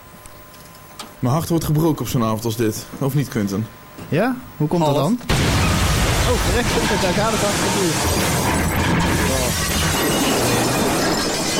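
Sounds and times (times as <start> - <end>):
speech: 1.2 - 5.4, 6.3 - 9.1
things being smashed to pieces: 5.3 - 11.5.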